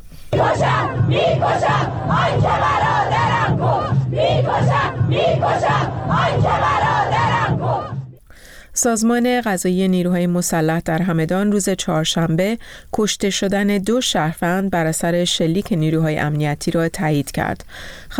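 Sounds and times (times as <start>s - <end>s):
funeral crowd chanting protest slogans against security forces: 0.3s - 8.2s
speech: 8.8s - 18.1s.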